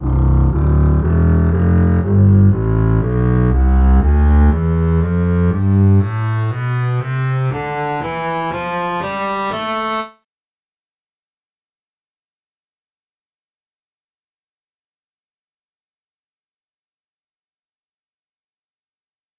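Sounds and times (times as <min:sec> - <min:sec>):
double bass playing a scale: 0:00.0 - 0:10.2.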